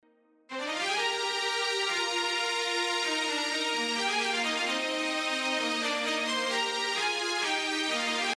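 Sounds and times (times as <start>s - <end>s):
strings: 0.5s - 8.3s.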